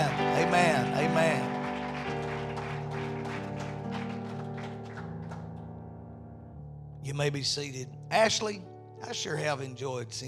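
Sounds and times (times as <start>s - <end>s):
audience clapping: 0.0s - 5.8s
speech: 7.1s - 10.2s.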